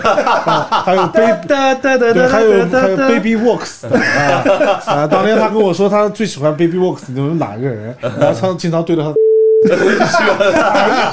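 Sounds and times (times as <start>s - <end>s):
laughter: 0.0s - 1.4s, 3.8s - 5.6s, 8.0s - 8.5s, 9.6s - 11.1s
speech: 0.0s - 11.1s
censor bleep tone: 9.2s - 9.7s.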